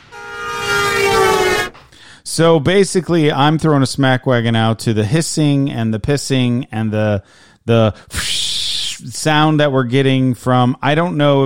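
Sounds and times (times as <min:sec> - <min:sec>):
train horn blaring: 0:00.0 - 0:01.8
speech: 0:02.4 - 0:08.3, 0:09.0 - 0:11.4.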